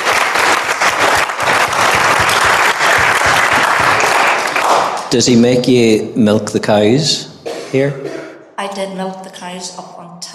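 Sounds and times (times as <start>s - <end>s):
audience applause: 0.0s - 5.4s
speech: 5.1s - 10.3s.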